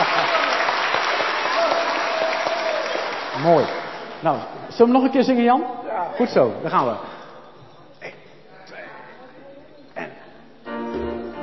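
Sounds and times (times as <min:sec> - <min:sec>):
choir group applause: 0:00.0 - 0:04.2
speech: 0:03.4 - 0:07.1.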